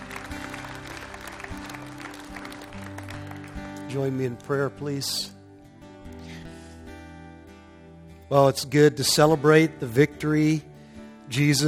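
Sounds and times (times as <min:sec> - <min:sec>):
hand clapping: 0:00.0 - 0:04.5
speech: 0:03.9 - 0:05.4, 0:08.3 - 0:10.7, 0:11.3 - 0:11.6.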